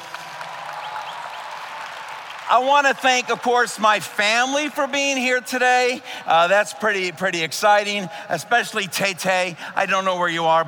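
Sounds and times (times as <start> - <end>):
audience applause at a ceremony honoring staff: 0.0 - 4.9
speech: 2.5 - 10.6.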